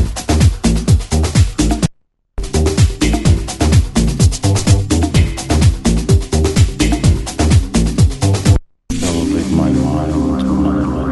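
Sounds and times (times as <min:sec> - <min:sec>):
tribal groove music: 0:00.0 - 0:11.0.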